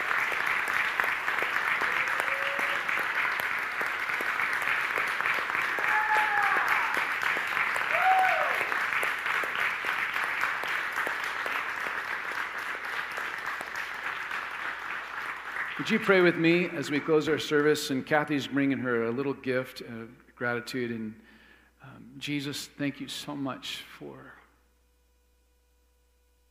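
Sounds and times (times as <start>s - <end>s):
audience applause: 0.0s - 17.1s
speech: 15.8s - 21.2s, 22.2s - 24.4s.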